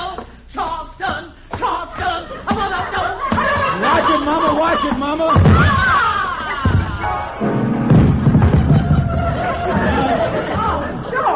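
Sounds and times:
laughter: 1.6s - 11.3s
crowd murmuring and chattering: 2.0s - 11.3s
piano notes struck all at once: 6.6s - 11.3s
heavy thud and crash of person falling into a piano: 7.6s - 9.0s.

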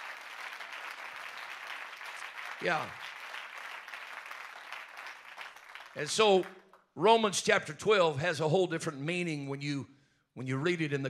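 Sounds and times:
audience clapping hands: 0.0s - 6.9s
speech: 2.6s - 3.2s, 6.0s - 11.0s.

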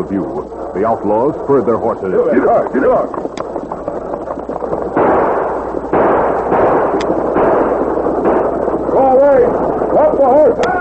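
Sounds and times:
speech: 0.0s - 3.4s, 9.2s - 10.7s
volley of loud gunshots: 2.3s - 10.7s.

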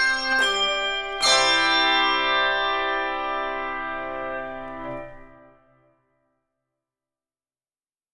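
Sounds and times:
three to six octave handbells ringing: 0.0s - 5.3s.

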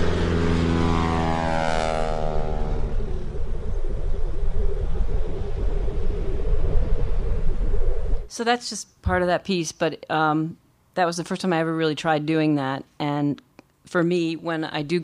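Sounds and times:
plane engine: 0.0s - 8.3s
speech: 8.4s - 15.0s.

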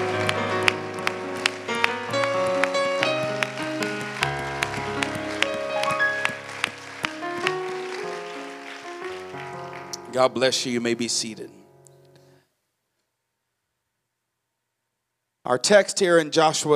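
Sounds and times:
audience hand clapping: 0.0s - 10.2s
speech: 10.2s - 11.6s, 15.5s - 16.7s.

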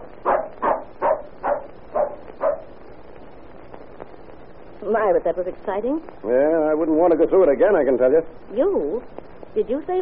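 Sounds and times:
dog barking: 0.2s - 2.8s
speech: 4.9s - 10.0s.

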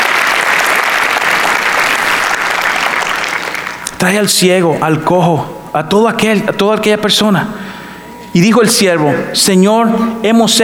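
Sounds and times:
audience applauding: 0.0s - 4.4s
speech: 4.0s - 7.6s, 8.3s - 10.6s.

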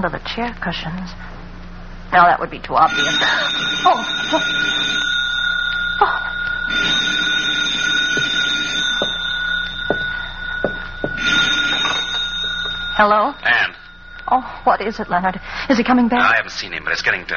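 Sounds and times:
speech: 0.0s - 1.3s, 2.1s - 5.2s, 6.0s - 7.0s, 13.0s - 17.3s
telephone ringing: 2.8s - 17.3s.

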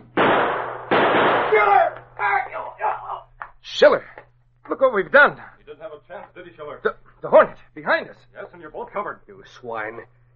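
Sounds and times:
gunshots: 0.0s - 2.0s
low steady hum: 0.0s - 10.3s
speech: 3.8s - 4.1s, 4.8s - 10.2s.

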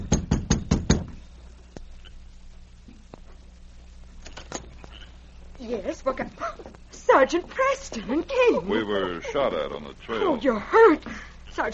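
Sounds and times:
knocking on a cabin door: 0.0s - 1.2s
speech: 5.7s - 11.7s.

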